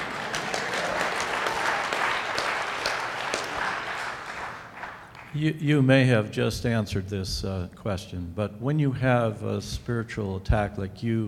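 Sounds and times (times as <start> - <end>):
audience clapping: 0.0 - 5.5
speech: 5.3 - 11.2.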